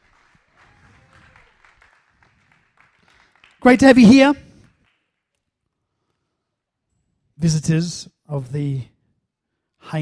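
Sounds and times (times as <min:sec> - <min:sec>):
audience applause: 0:00.0 - 0:05.1
speech: 0:03.6 - 0:04.4, 0:07.4 - 0:08.9.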